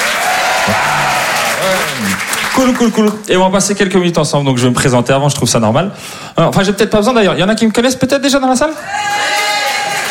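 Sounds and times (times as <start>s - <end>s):
audience applause: 0.0s - 3.2s, 9.0s - 10.0s
speech: 1.6s - 9.4s.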